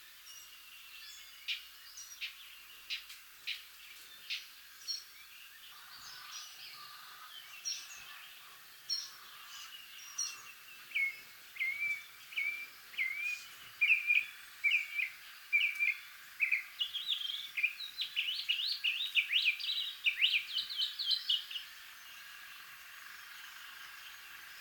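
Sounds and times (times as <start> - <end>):
Northern mockingbird singing: 8.9 - 21.7.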